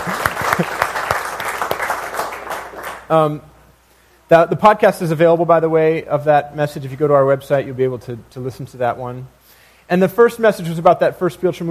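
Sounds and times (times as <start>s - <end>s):
audience clapping: 0.0s - 3.3s
speech: 3.1s - 3.5s, 4.3s - 11.6s.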